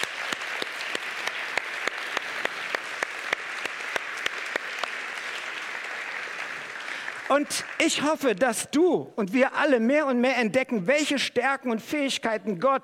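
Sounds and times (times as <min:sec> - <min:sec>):
audience applause: 0:00.0 - 0:08.4
speech: 0:07.3 - 0:12.8.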